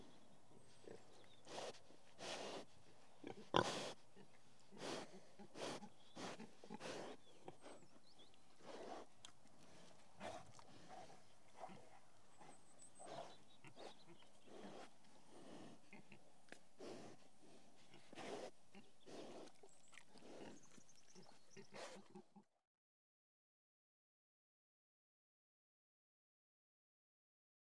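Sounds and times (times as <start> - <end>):
several pigs grunting in a field: 0.6 - 8.0, 8.6 - 22.5.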